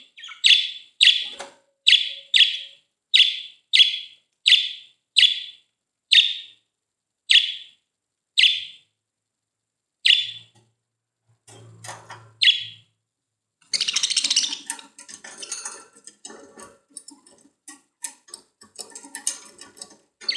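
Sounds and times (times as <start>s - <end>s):
budgerigar chirping: 0.0s - 6.6s, 7.3s - 7.8s, 8.4s - 8.8s, 10.0s - 10.5s, 12.4s - 12.9s, 13.6s - 14.7s.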